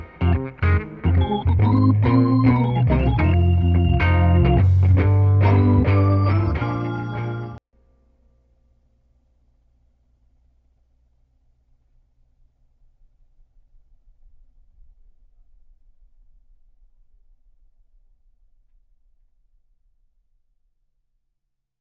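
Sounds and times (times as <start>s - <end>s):
music without drums: 0.0s - 8.3s.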